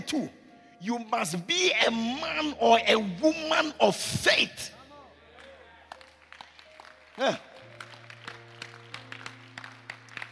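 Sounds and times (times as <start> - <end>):
speech: 0.1 - 4.8, 7.2 - 7.5
audience clapping: 5.3 - 10.3.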